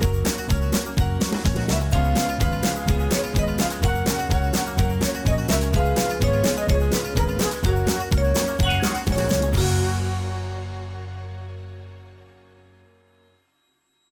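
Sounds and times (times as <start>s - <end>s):
square dance music rhythm track: 0.0s - 11.2s.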